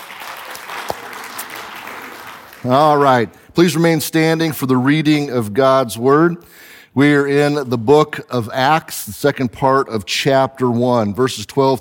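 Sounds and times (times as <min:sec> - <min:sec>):
audience applause: 0:00.0 - 0:03.4
speech: 0:02.6 - 0:11.8.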